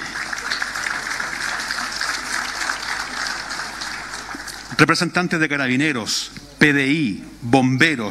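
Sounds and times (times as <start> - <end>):
audience applause: 0.0 - 5.1
speech: 4.8 - 8.0.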